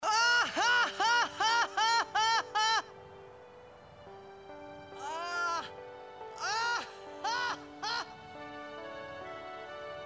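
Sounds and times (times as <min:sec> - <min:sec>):
person laughing: 0:00.0 - 0:02.9, 0:06.4 - 0:08.1.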